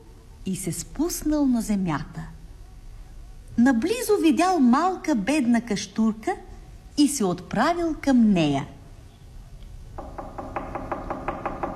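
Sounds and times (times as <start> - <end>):
speech: 0.4 - 2.4, 3.6 - 8.8
knocking on a door: 10.0 - 11.7.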